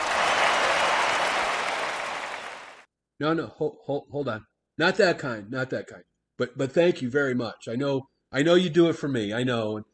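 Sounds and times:
crowd cheering and applause sound effect: 0:00.0 - 0:02.9
speech: 0:03.2 - 0:09.9.

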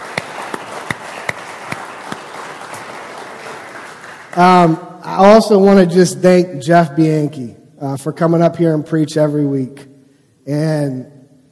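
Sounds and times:
audience hand clapping: 0:00.0 - 0:04.8
speech: 0:04.4 - 0:11.2.

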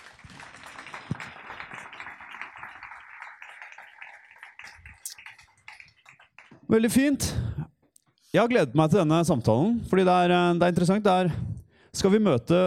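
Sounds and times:
audience applause: 0:00.0 - 0:06.7
speech: 0:06.7 - 0:07.4, 0:08.4 - 0:12.6.

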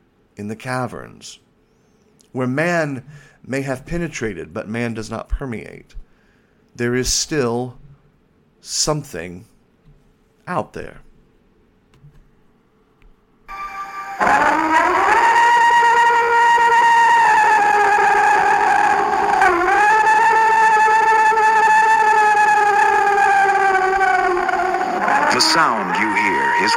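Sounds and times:
speech: 0:00.4 - 0:01.5, 0:02.3 - 0:06.0, 0:06.8 - 0:07.9, 0:08.6 - 0:09.5, 0:10.5 - 0:11.1
alleged Bigfoot scream recorded by campers: 0:13.5 - 0:26.7.

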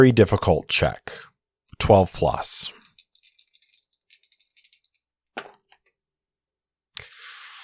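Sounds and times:
speech: 0:00.0 - 0:02.8
dice being rolled: 0:02.7 - 0:05.8.

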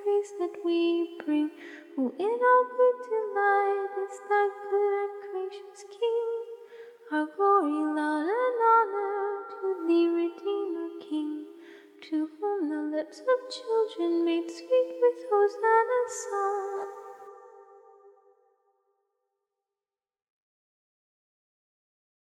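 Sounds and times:
a cappella hymn singing: 0:00.0 - 0:17.7.

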